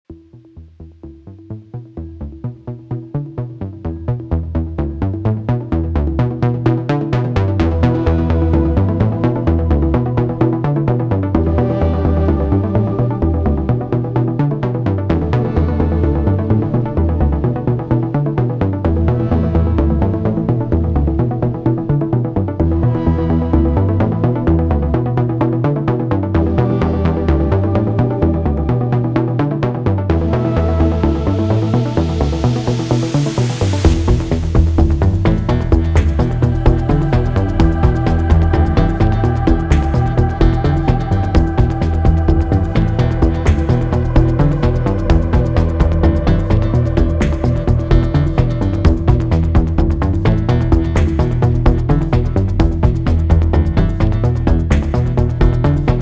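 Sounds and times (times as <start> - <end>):
background music: 0.1 - 56.0.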